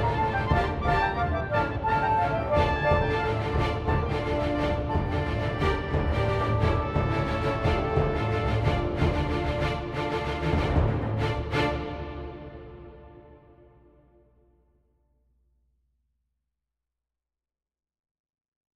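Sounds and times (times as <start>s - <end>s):
symphony orchestra: 0.0s - 14.1s.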